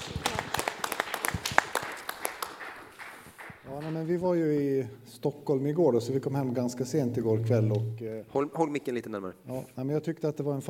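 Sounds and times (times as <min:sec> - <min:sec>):
audience applause: 0:00.0 - 0:04.2
speech: 0:04.0 - 0:10.6.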